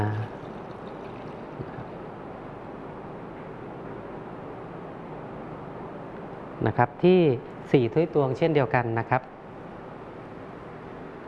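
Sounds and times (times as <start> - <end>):
milk pouring into an equal amount of water: 0.1 - 2.0
speech: 6.6 - 9.4.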